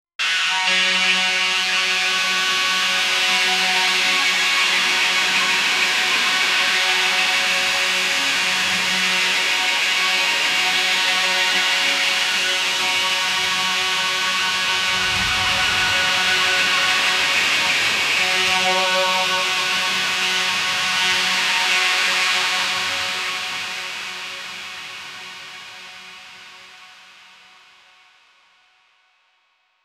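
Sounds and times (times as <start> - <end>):
full-on goa psychedelic trance music: 0.5 - 26.3.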